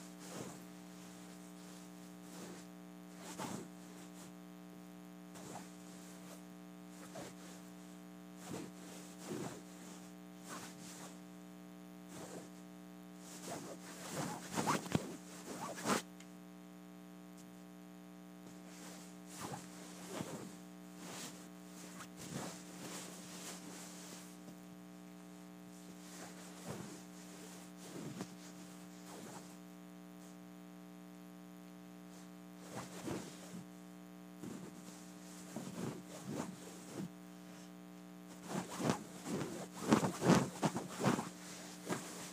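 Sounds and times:
pillow case scratched and rubbed: 0:00.2 - 0:04.0, 0:05.4 - 0:06.4, 0:07.0 - 0:07.6, 0:08.4 - 0:11.2, 0:13.2 - 0:16.0, 0:18.6 - 0:24.4, 0:25.8 - 0:29.6, 0:32.6 - 0:33.6, 0:34.4 - 0:37.1, 0:38.3 - 0:42.3.

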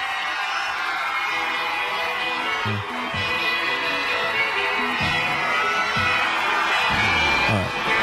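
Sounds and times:
crowd of children screaming at a concert: 0:00.0 - 0:08.0
low thumping beats from the concert music: 0:04.9 - 0:08.0.

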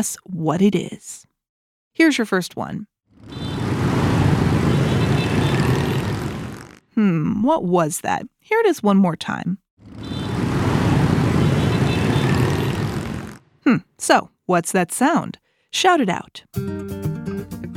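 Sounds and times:
speech: 0:00.0 - 0:01.3, 0:02.0 - 0:03.4, 0:07.0 - 0:10.1, 0:13.7 - 0:17.0
motorbike traffic in Ho Chi Minh: 0:03.1 - 0:06.8, 0:09.8 - 0:13.6.

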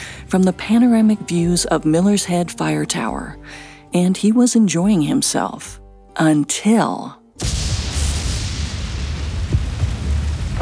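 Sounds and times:
speech: 0:00.3 - 0:07.6
lightning strike: 0:07.4 - 0:10.5
thunder: 0:07.4 - 0:10.5.

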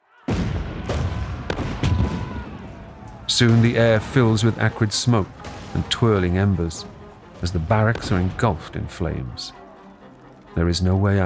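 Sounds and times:
gunfire on surrounded barracks: 0:00.3 - 0:04.3, 0:07.4 - 0:08.6
artillery opening fire on surrounded barracks: 0:00.3 - 0:08.7
speech: 0:03.4 - 0:09.6, 0:10.6 - 0:11.2.

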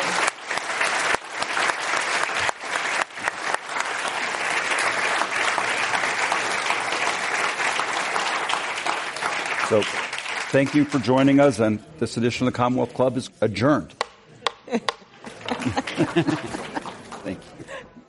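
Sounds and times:
audience round of applause: 0:00.0 - 0:11.3, 0:15.2 - 0:17.8
speech: 0:09.7 - 0:14.0, 0:15.6 - 0:17.5
laughter: 0:14.3 - 0:18.0.

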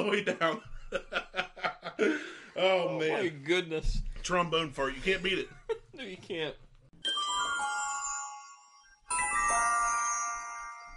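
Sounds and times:
speech: 0:00.0 - 0:01.2, 0:02.0 - 0:06.6
laughter: 0:00.0 - 0:02.4
jingly flashback sound effect: 0:07.0 - 0:10.9.

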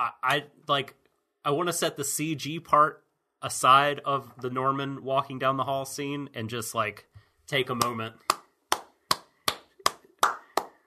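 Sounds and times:
speech: 0:00.0 - 0:08.3
hands clapping: 0:07.7 - 0:10.8.

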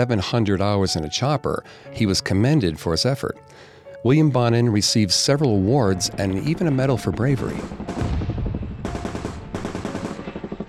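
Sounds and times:
speech: 0:00.0 - 0:08.2
machine gun fire in battle: 0:07.4 - 0:10.6.

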